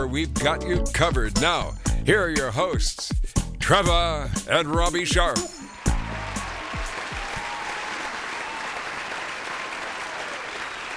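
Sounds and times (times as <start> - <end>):
speech: 0.0 - 5.6
canned studio applause: 5.3 - 10.9.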